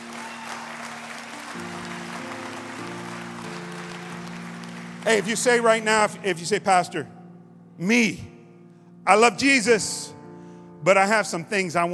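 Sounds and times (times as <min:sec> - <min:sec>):
audience hand clapping: 0:00.0 - 0:06.2
speech: 0:05.0 - 0:07.2, 0:07.8 - 0:08.3, 0:09.0 - 0:10.2, 0:10.8 - 0:11.9.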